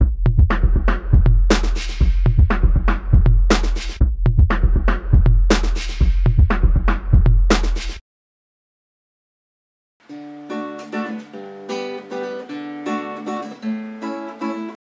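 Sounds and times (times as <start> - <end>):
sample beats: 0.0 - 8.0.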